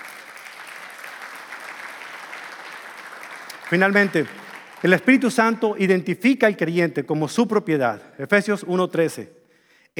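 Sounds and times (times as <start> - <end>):
audience applause: 0.0 - 5.4
speech: 3.7 - 9.4.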